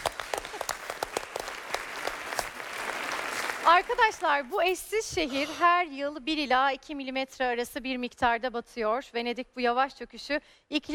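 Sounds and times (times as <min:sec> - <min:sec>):
applause from a group during a quiz-style learning session: 0:00.0 - 0:04.6
speech: 0:03.7 - 0:10.9.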